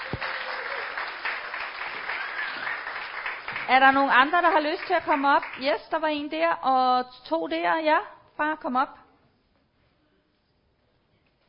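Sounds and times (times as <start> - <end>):
audience applause: 0.0 - 5.6
speech: 3.7 - 9.0.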